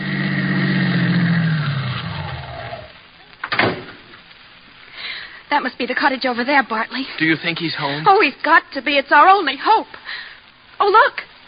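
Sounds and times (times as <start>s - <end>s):
car driving up radio drama sound effect: 0.0s - 3.1s
speech: 5.5s - 11.4s.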